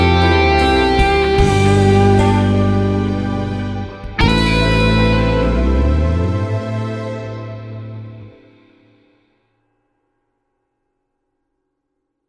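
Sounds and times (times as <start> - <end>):
blues music: 0.0 - 9.0.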